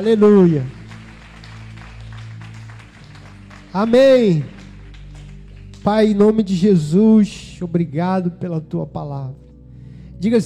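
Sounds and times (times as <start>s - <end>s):
speech: 0.0s - 0.8s, 3.7s - 4.6s, 5.8s - 9.4s, 10.2s - 10.4s
applause: 0.0s - 7.0s
sustained low keyboard chords: 0.0s - 10.4s.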